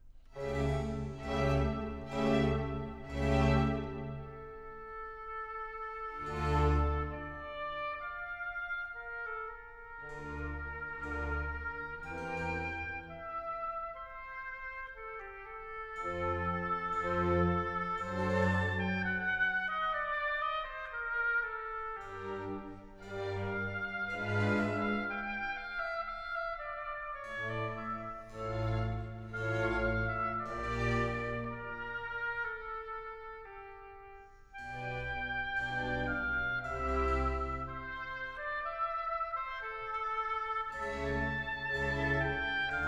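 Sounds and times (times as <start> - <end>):
classical suite movement in F major: 0.0 - 42.8.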